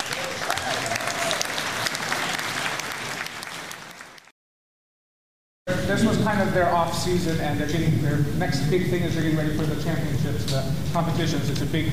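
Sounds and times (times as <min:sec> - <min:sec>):
audience applause: 0:00.0 - 0:04.3
speech: 0:05.9 - 0:11.9.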